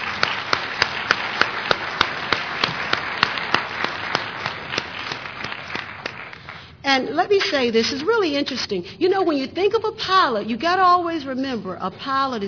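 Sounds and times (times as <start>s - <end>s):
audience applause: 0.0s - 6.6s
speech: 6.9s - 12.4s.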